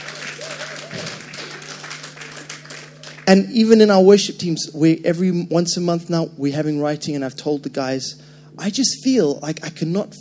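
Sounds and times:
crowd clapping: 0.0s - 3.6s
speech: 3.3s - 10.1s.

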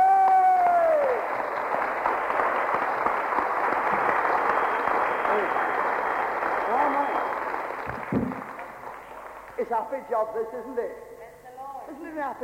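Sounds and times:
person whooping: 0.0s - 1.2s
audience clapping: 0.0s - 10.3s
speech: 10.0s - 11.1s, 12.2s - 12.4s.

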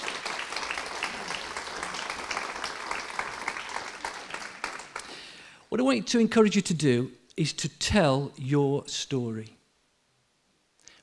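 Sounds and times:
audience applause: 0.0s - 5.4s
speech: 5.7s - 9.6s.

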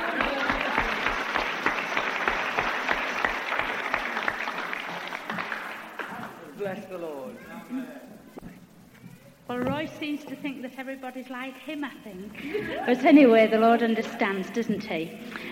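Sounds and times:
audience clapping in a steady rhythmic beat: 0.0s - 6.8s
speech: 9.5s - 15.5s.

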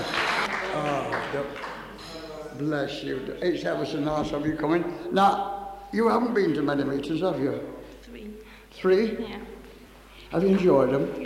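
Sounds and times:
audience clapping: 0.0s - 2.4s
speech: 1.3s - 1.7s, 2.6s - 7.8s, 8.8s - 9.5s, 10.3s - 11.2s.

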